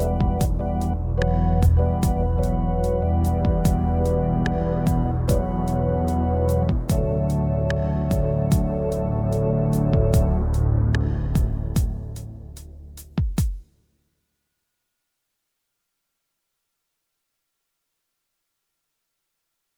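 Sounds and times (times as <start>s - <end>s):
instrumental music: 0.0s - 13.7s.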